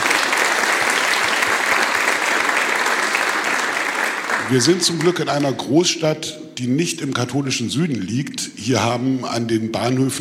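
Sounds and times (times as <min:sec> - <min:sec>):
applause: 0:00.0 - 0:05.6
speech: 0:04.5 - 0:10.1.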